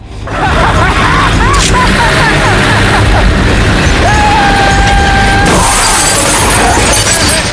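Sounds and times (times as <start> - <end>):
laughter: 0.2 - 5.3
car deliberately driven into another car, crashing: 5.3 - 7.5.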